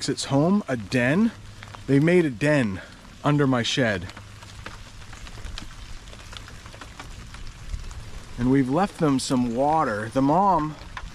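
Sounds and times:
speech: 0:00.0 - 0:04.2, 0:08.4 - 0:10.8
steady rain pattering on a hard surface: 0:00.0 - 0:11.1.

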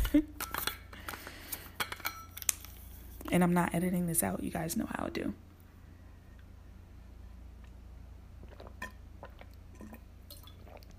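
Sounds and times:
speech: 0:03.3 - 0:05.4
sipping water from a glass: 0:07.6 - 0:10.9.

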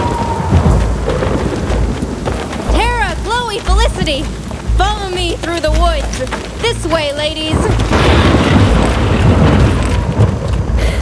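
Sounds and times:
thunder from a lightning storm: 0:00.0 - 0:03.2, 0:07.6 - 0:11.0
speech: 0:04.1 - 0:08.3.

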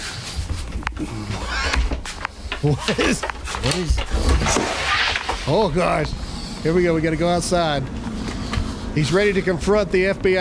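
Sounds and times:
man breathing heavily: 0:00.0 - 0:02.8, 0:06.1 - 0:06.8, 0:08.0 - 0:09.6
speech: 0:01.0 - 0:01.9, 0:02.6 - 0:08.0, 0:09.0 - 0:10.4.

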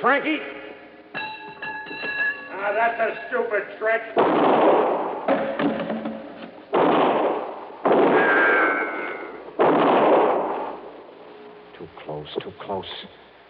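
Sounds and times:
speech: 0:00.0 - 0:01.2, 0:02.6 - 0:05.8, 0:12.2 - 0:13.2
gunshots: 0:04.2 - 0:11.0.

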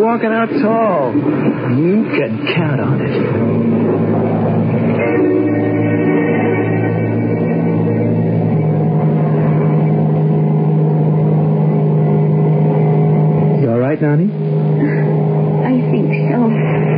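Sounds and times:
speech: 0:00.0 - 0:05.7
airplane engine droning in flight: 0:00.0 - 0:16.9.

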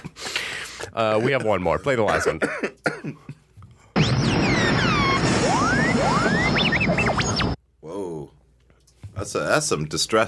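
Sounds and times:
speech: 0:01.0 - 0:03.3, 0:09.2 - 0:10.2
fireworks exploding: 0:04.0 - 0:07.6.

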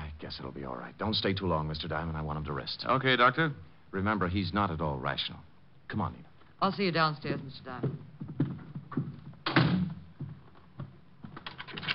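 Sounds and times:
speech: 0:00.3 - 0:08.1
door shutting: 0:09.4 - 0:10.1
door lock clicking and rattling: 0:11.4 - 0:11.9.

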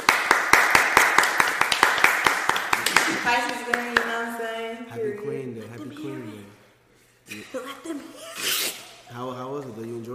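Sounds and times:
hand clapping: 0:00.0 - 0:04.2
speech: 0:03.3 - 0:04.0, 0:07.3 - 0:10.1.

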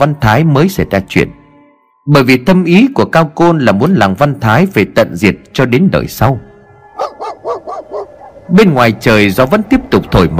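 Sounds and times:
speech: 0:00.0 - 0:01.4, 0:02.1 - 0:07.2, 0:08.5 - 0:10.3
dog barking on a porch: 0:07.0 - 0:08.5.

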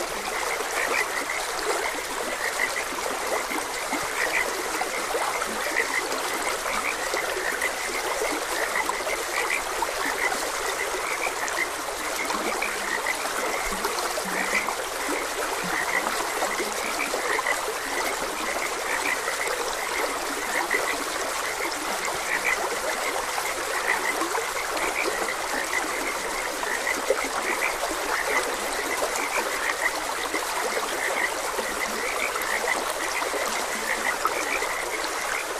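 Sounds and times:
frogs croaking: 0:00.0 - 0:35.5
gurgling stream: 0:00.0 - 0:35.5.

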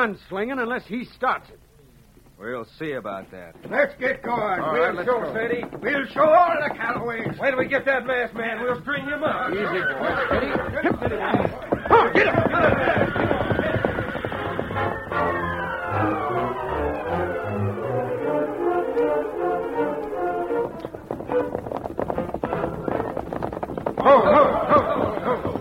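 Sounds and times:
speech: 0:00.0 - 0:01.7, 0:02.4 - 0:13.2
horses galloping and reining up: 0:03.3 - 0:25.5
laughter: 0:08.7 - 0:15.0, 0:23.9 - 0:25.5
dramatic music: 0:14.1 - 0:21.5.

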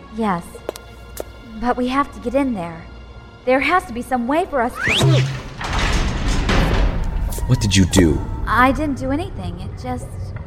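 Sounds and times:
speech: 0:00.2 - 0:00.6, 0:01.6 - 0:05.4, 0:07.5 - 0:10.2
heavy door mechanism clanking and grinding as it unlocks, rumbling slide open: 0:04.9 - 0:07.6.

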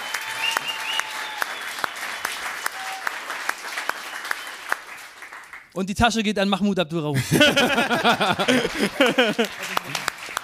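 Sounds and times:
applause: 0:00.0 - 0:05.8, 0:08.0 - 0:10.4
speech: 0:05.8 - 0:10.0
laughter: 0:07.2 - 0:10.4.

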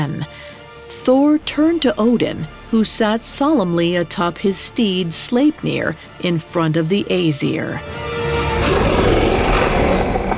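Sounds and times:
speech: 0:01.0 - 0:08.0
wolf growling: 0:08.5 - 0:10.3.

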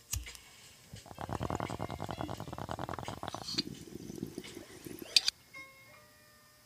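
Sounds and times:
bubbling bong hit: 0:00.6 - 0:05.3.

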